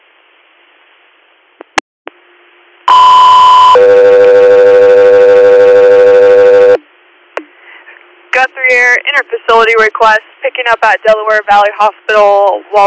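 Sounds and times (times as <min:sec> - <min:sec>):
radio dispatch alert tones: 0:02.9 - 0:06.8
speech: 0:09.2 - 0:12.8.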